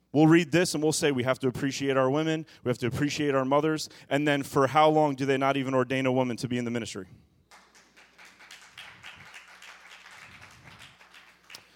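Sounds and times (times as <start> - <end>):
speech: 0.1 - 7.3
few people clapping: 7.5 - 11.7.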